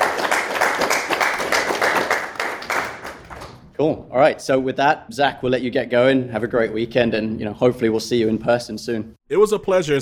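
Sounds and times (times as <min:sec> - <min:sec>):
group applause: 0:00.0 - 0:03.7
speech: 0:03.8 - 0:10.0.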